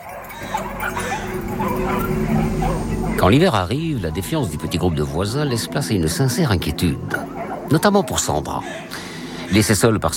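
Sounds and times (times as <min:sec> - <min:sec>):
several dogs barking and yelping: 0:00.0 - 0:10.1
speech: 0:00.4 - 0:10.1.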